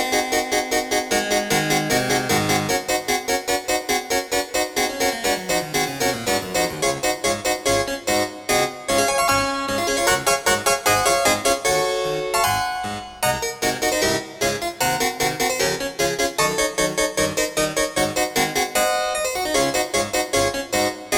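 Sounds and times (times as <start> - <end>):
harpsichord piece in 31edo tuning: 0.0 - 21.1.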